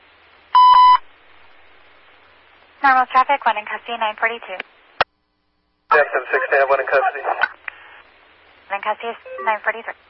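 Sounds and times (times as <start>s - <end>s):
faint hiss: 0.0s - 10.0s
speech: 2.8s - 4.8s, 5.9s - 7.6s, 8.7s - 10.0s
electronic dispatch alert tone: 9.3s - 9.6s.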